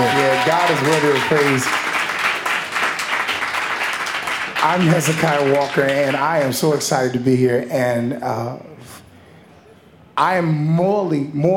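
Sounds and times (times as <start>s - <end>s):
audience clapping hands in praise: 0.0s - 6.6s
speech: 0.5s - 1.9s, 4.6s - 9.0s, 10.2s - 11.5s.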